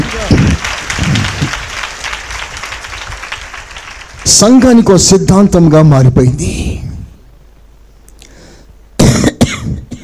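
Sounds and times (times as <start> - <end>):
church congregation clapping loudly in praise of God: 0.0 - 5.6
speech: 4.2 - 6.8.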